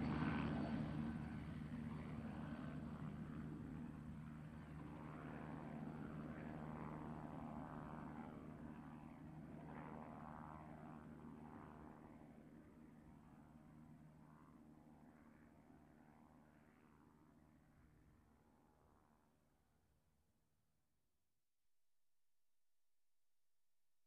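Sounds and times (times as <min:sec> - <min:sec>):
helicopter flying over: 0:00.0 - 0:19.2.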